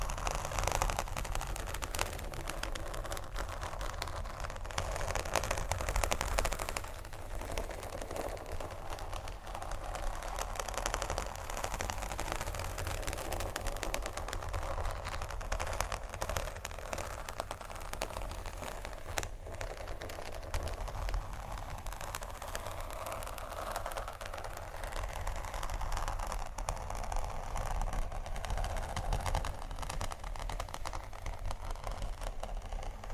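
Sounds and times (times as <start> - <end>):
dense scratching and tapping: 0.0 - 33.1.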